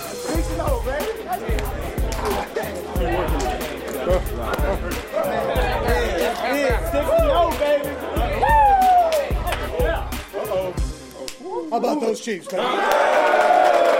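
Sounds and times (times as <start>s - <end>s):
speech: 0.5s - 8.6s, 11.7s - 13.4s
large stadium crowd cheering: 8.2s - 9.7s, 12.5s - 13.9s.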